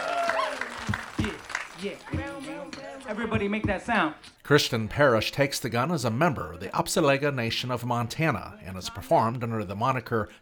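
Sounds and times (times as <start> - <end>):
audience applause: 0.0 - 2.7
people whooping and calling out: 0.0 - 2.7
speech: 3.1 - 10.3.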